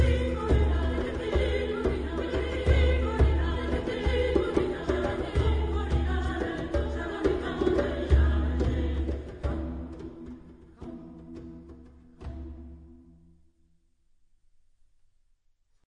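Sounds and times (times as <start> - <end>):
person singing: 0.0 - 10.0.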